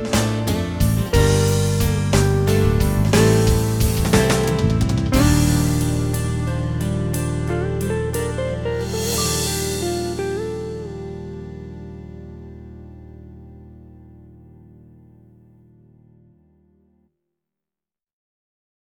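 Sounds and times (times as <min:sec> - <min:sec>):
blues music: 0:00.0 - 0:14.3.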